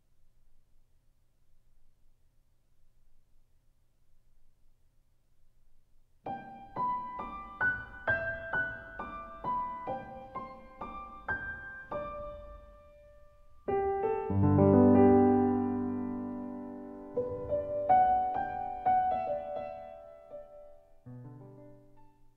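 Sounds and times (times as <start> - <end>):
Christmas piano cover: 6.3 - 22.3.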